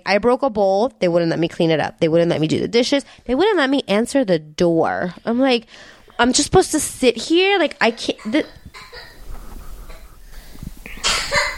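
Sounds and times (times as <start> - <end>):
speech: 0.0 - 9.1
woman coughing: 8.0 - 9.3, 10.9 - 11.5.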